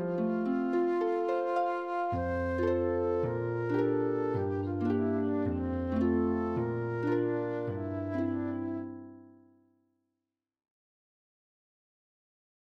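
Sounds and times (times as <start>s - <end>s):
low hymn in F: 0.0s - 9.2s.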